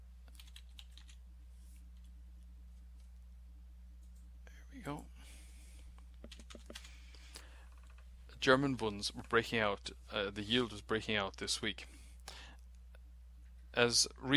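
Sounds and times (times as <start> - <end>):
speech: 4.8 - 5.1, 8.4 - 12.0, 13.8 - 14.3
keystrokes on a computer keyboard typing a stock ticker: 6.2 - 6.9.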